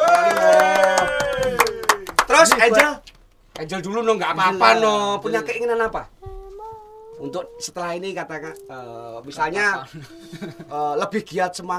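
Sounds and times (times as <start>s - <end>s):
applause: 0.0s - 3.0s
speech: 2.5s - 6.2s, 7.2s - 11.7s
laughter: 9.8s - 11.0s.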